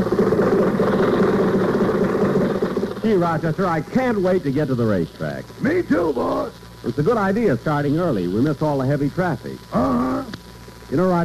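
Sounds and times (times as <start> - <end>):
old car engine running: 0.0 - 4.1
speech: 3.1 - 10.3, 10.9 - 11.2.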